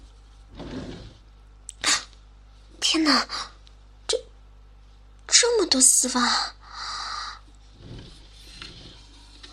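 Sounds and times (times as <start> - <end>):
drawer sliding open: 0.5 - 1.2, 7.7 - 9.4
speech: 3.0 - 3.5, 5.4 - 6.6.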